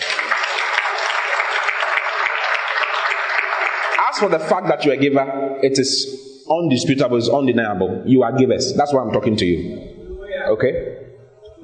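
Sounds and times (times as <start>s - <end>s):
audience applause: 0.0s - 4.9s
speech: 4.1s - 9.9s, 10.5s - 11.0s.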